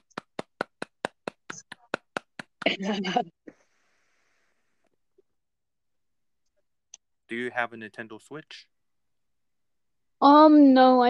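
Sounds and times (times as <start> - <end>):
hand clapping: 0.0 - 3.2
speech: 2.6 - 3.4, 7.3 - 8.7, 10.2 - 11.0.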